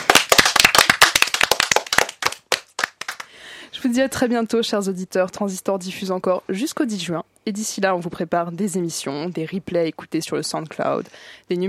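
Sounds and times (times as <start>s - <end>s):
audience applause: 0.0s - 3.3s
speech: 3.8s - 11.6s.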